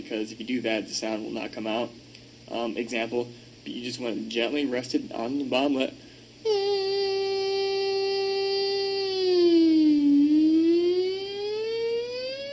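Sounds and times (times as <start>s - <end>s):
speech: 0.0s - 6.0s
voice imitating a police siren: 6.4s - 12.5s.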